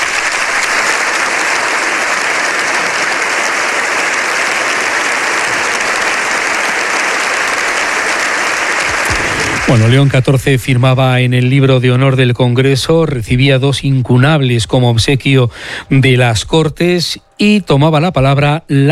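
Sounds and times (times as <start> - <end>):
applause greeting arrival at parliament: 0.0 - 12.2
speech: 9.7 - 18.8.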